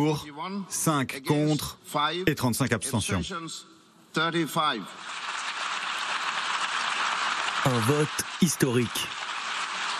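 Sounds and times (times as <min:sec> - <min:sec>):
speech: 0:00.0 - 0:05.3, 0:07.6 - 0:09.2
long ovation in the UN General Assembly after a vote: 0:05.0 - 0:09.9.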